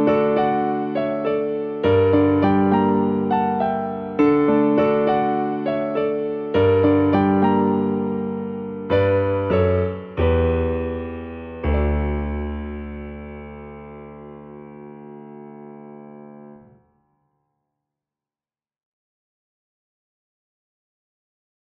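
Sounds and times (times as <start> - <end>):
piano: 0.0 - 17.3.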